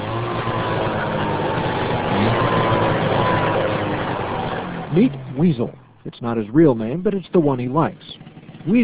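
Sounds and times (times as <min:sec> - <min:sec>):
Ski-Doo Formula SL snowmobile engine roaring: 0:00.0 - 0:08.8
speech: 0:05.0 - 0:08.8.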